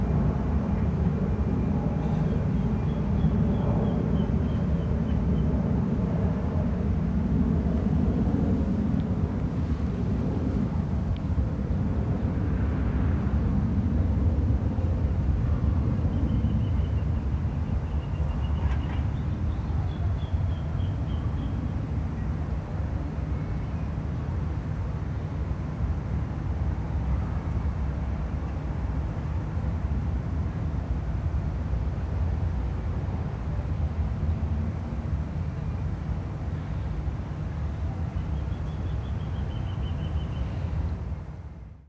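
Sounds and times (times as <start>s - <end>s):
airplane: 0.0s - 41.8s
birds: 16.0s - 22.3s, 38.0s - 40.8s.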